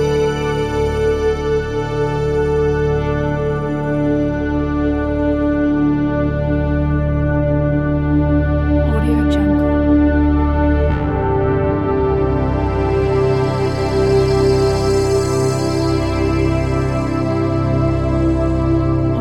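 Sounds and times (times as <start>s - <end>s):
ambient soundscape: 0.0s - 19.2s.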